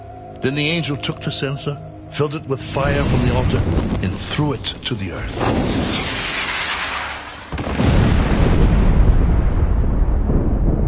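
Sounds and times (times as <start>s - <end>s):
speech: 0.4s - 6.4s
earthquake rumble: 2.8s - 10.8s
thunderings: 3.0s - 4.3s, 5.4s - 10.8s.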